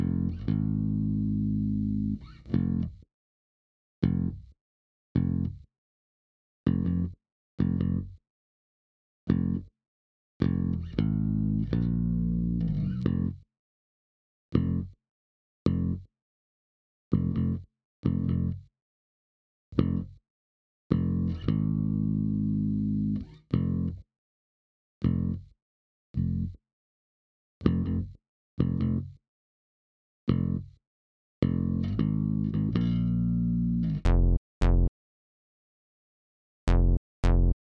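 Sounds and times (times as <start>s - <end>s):
bass: 0.0s - 3.0s, 4.0s - 4.5s, 5.2s - 5.7s, 6.7s - 8.2s, 9.3s - 9.7s, 10.4s - 13.4s, 14.5s - 15.0s, 15.7s - 16.1s, 17.1s - 18.7s, 19.7s - 20.2s, 20.9s - 24.0s, 25.0s - 25.6s, 26.2s - 26.6s, 27.6s - 29.2s, 30.3s - 30.8s, 31.4s - 34.9s, 36.7s - 37.6s.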